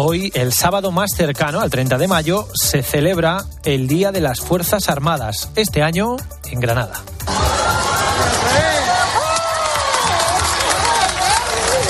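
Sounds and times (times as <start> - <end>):
speech: 0.0 - 7.2
crowd cheering at Plaza Albert Einstein: 7.3 - 11.8.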